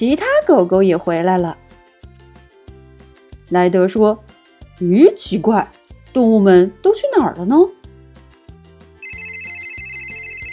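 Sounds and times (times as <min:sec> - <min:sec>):
speech: 0:00.0 - 0:01.6, 0:03.5 - 0:07.8
mobile phone ringing: 0:09.0 - 0:10.5.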